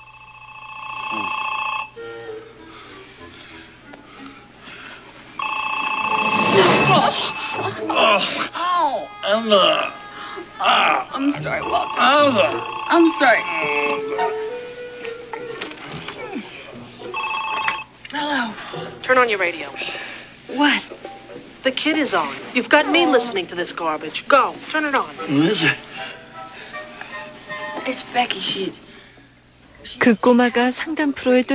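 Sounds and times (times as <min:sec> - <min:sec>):
telephone ringing loudly at night: 0:00.0 - 0:02.1, 0:05.4 - 0:08.0, 0:11.3 - 0:14.4, 0:17.1 - 0:18.0
sleepy voices of people woken by the ringing murmuring and groaning: 0:05.5 - 0:17.3, 0:25.2 - 0:25.9
speech: 0:09.5 - 0:10.0, 0:10.6 - 0:14.4, 0:18.3 - 0:20.9, 0:21.6 - 0:25.9, 0:27.9 - 0:28.9, 0:29.8 - 0:31.5.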